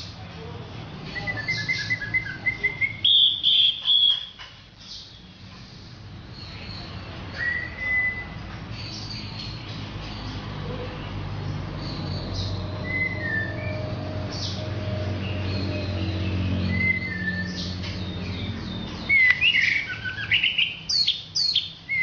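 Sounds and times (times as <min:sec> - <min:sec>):
orange-headed thrush song: 0:01.1 - 0:04.4, 0:06.3 - 0:09.6, 0:11.8 - 0:22.0.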